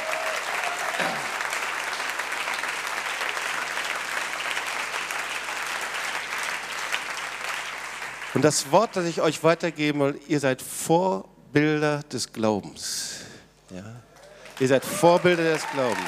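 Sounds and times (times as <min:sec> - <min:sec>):
audience applause: 0:00.0 - 0:09.2, 0:14.2 - 0:16.0
speech: 0:08.4 - 0:16.0.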